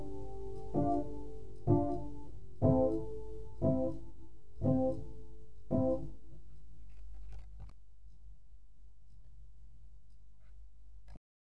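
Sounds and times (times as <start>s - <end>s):
piano: 0.0s - 6.5s.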